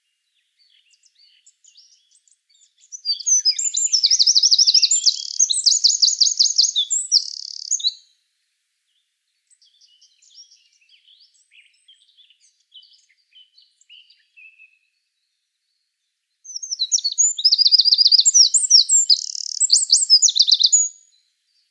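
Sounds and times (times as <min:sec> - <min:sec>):
Eurasian wren song: 0:00.9 - 0:08.0, 0:16.5 - 0:21.1.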